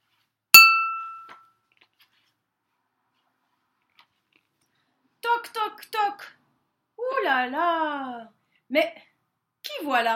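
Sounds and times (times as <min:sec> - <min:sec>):
chime signalling to turn the page: 0:00.6 - 0:01.3
speech: 0:05.4 - 0:06.4, 0:07.1 - 0:09.1, 0:09.8 - 0:10.1.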